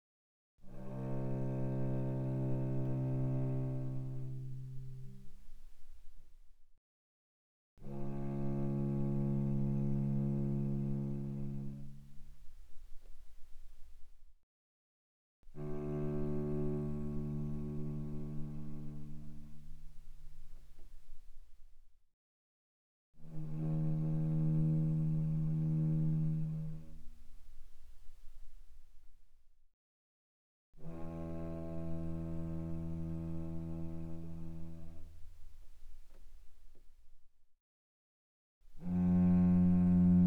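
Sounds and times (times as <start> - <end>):
cello bowed pianissimo on the C string: 0.6 - 6.2, 7.8 - 14.0, 15.5 - 21.5, 23.2 - 28.8, 30.8 - 36.8, 38.7 - 40.2.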